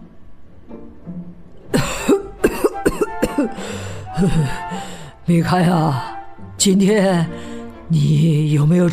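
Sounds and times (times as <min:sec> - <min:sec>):
grandfather coughing harshly: 0:01.7 - 0:03.6
speech: 0:03.4 - 0:08.9.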